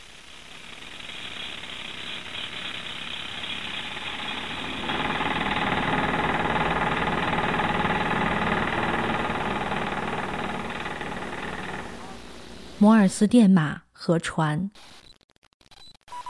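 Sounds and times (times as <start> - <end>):
tractor: 0.0 - 12.5
riveting machine: 0.0 - 12.8
speech: 12.8 - 15.0.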